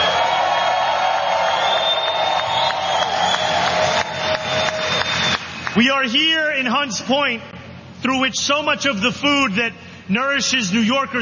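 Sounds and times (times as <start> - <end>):
crowd applause: 0.0 - 5.8
speech: 5.8 - 11.2.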